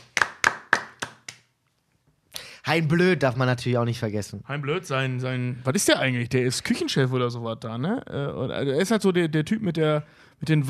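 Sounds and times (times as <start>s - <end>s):
applause: 0.0s - 1.5s
speech: 2.7s - 10.6s.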